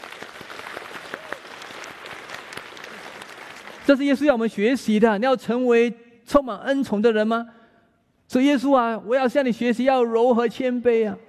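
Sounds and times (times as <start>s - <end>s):
audience applause: 0.0s - 4.0s
speech: 3.9s - 7.6s, 8.3s - 11.2s.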